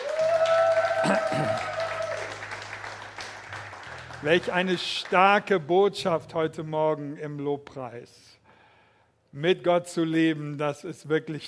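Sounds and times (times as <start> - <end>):
audience applause: 0.0 - 5.5
speech: 1.0 - 1.7, 4.2 - 8.4, 9.3 - 11.4.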